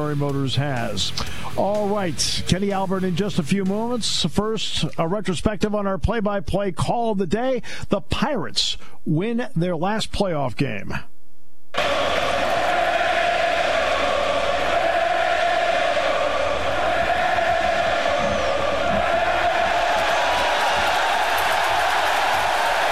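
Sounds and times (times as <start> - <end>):
speech: 0.0 - 11.1
standing room only baseball crowd roaring: 11.8 - 22.8.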